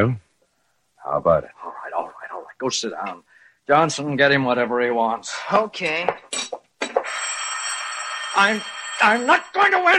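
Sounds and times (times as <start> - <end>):
speech: 0.0 - 0.2, 1.0 - 6.6, 8.4 - 9.9
telephone ringing with metallic trill: 6.9 - 9.9.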